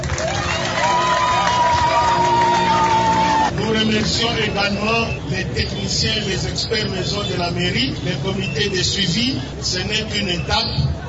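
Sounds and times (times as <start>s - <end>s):
audience cheering: 0.0s - 3.8s
audience applause: 0.0s - 4.3s
speech: 4.1s - 11.0s.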